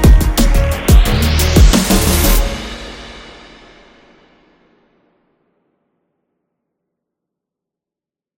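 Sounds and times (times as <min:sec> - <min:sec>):
koto over beats: 0:00.0 - 0:03.2.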